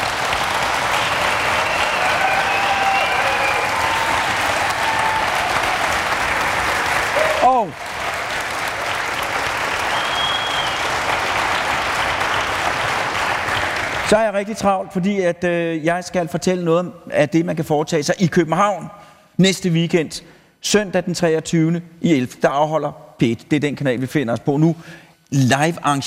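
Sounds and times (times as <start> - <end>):
audience applause: 0.0 - 14.2
speech: 14.1 - 26.0.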